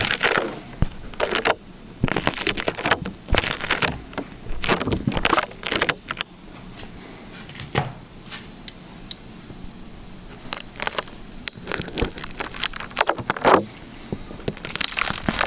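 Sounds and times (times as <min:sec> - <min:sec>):
liquid slime being squished and pulled: 0:00.0 - 0:06.2, 0:10.3 - 0:15.4.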